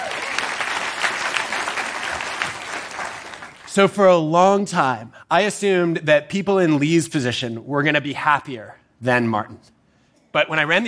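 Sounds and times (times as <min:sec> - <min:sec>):
audience applause: 0:00.0 - 0:03.7
speech: 0:03.8 - 0:10.8.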